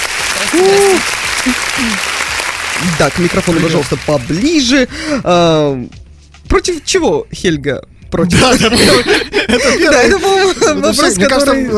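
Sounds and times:
audience applause: 0.0 - 4.9
cheering whoop: 0.2 - 2.1
speech: 0.5 - 2.1, 2.8 - 11.7
laughter: 2.8 - 4.1, 8.3 - 11.1.

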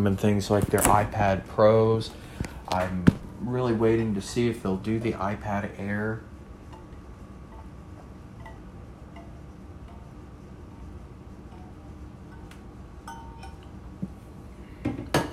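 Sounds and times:
speech: 0.0 - 6.3
glass clinking while getting water: 13.1 - 13.7.

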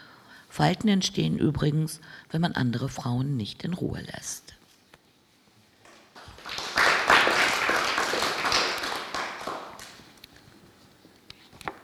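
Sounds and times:
speech: 0.6 - 4.6
audience clapping: 5.9 - 10.2.

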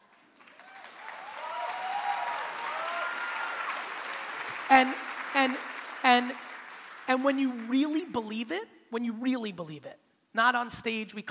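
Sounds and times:
audience clapping: 0.0 - 8.3
speech: 4.7 - 6.5, 7.1 - 11.2.

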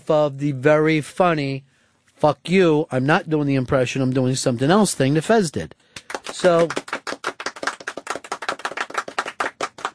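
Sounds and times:
speech: 0.1 - 6.8
weak applause from another room: 6.0 - 9.9.

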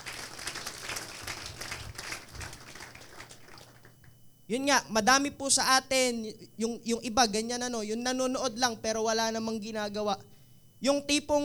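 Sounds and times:
church congregation clapping to praise the Lord: 0.0 - 4.2
speech: 4.5 - 11.4.

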